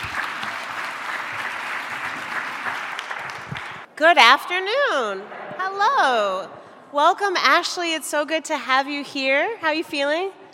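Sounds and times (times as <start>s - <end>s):
audience applause welcoming guests on stage: 0.0s - 3.9s
speech: 4.0s - 10.4s.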